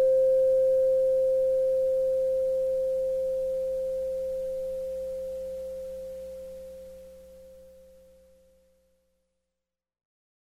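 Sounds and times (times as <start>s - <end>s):
low singing bowl ringing in C: 0.0s - 8.1s.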